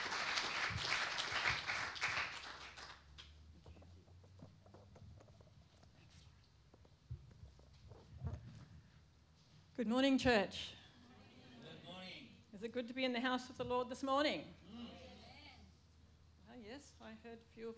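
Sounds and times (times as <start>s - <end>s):
church congregation applauding a speaker's welcome: 0.0s - 3.2s
scattered knocks and movement in a church: 3.5s - 8.9s
speech: 9.8s - 10.8s, 12.6s - 14.6s, 16.8s - 17.7s.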